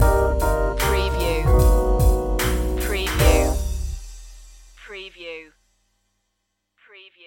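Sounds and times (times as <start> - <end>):
blue funk stinger: 0.0 - 4.1.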